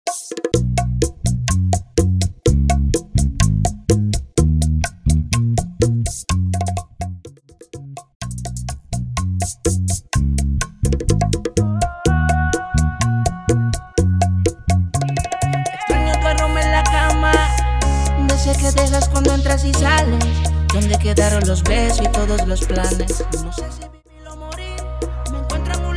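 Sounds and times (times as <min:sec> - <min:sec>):
bachata to trap music at 125 BPM: 0:00.1 - 0:25.9.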